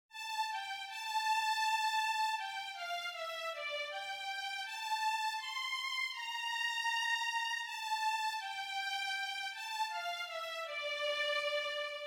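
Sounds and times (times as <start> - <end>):
violin: 0.1 - 12.0.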